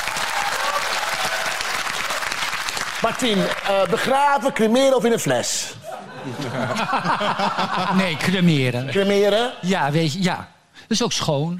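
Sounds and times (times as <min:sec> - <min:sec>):
audience applause: 0:00.0 - 0:04.0
speech: 0:03.0 - 0:11.5
laughter: 0:05.8 - 0:09.5.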